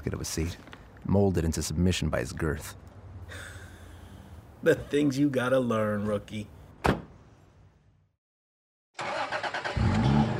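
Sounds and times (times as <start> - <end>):
speech: 0.0 - 3.5, 4.6 - 6.6
fading thud: 6.8 - 7.1
old police car engine starting and idling: 9.0 - 10.3.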